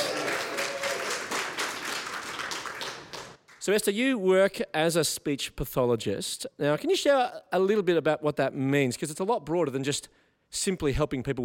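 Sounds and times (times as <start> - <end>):
audience applause: 0.0 - 3.4
speech: 3.6 - 11.4.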